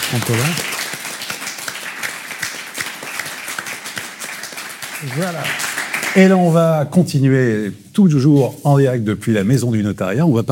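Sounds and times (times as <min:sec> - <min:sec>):
audience applause: 0:00.0 - 0:06.6
speech: 0:00.1 - 0:00.7, 0:05.0 - 0:10.5.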